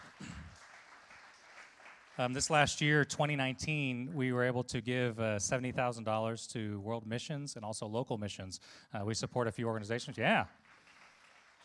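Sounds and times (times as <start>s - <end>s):
applause: 0.0s - 3.0s, 10.2s - 11.6s
speech: 2.2s - 10.6s.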